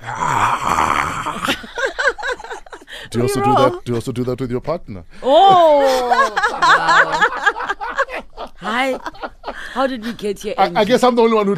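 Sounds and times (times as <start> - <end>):
person imitating a lion's roar: 0.0 - 1.5
laughter: 1.4 - 3.8, 5.6 - 9.8
speech: 3.1 - 7.6, 8.6 - 11.5.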